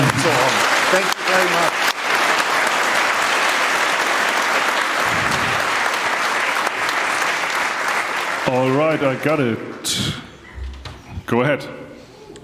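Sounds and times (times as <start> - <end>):
audience applause: 0.0 - 9.7
speech: 0.9 - 2.0, 8.6 - 10.2, 11.3 - 11.8.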